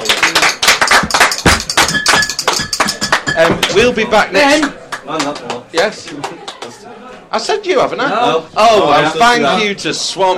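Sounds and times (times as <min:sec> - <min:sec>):
group applauding: 0:00.0 - 0:03.8, 0:04.5 - 0:06.8
speech: 0:03.4 - 0:06.4, 0:07.3 - 0:10.3.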